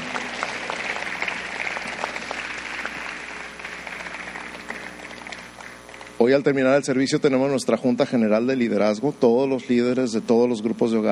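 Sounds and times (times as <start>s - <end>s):
audience applause: 0.0s - 6.3s
speech: 6.2s - 11.1s.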